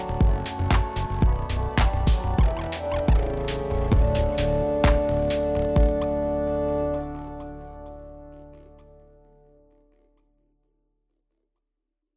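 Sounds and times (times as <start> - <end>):
organ reeds playing: 0.0 - 8.2.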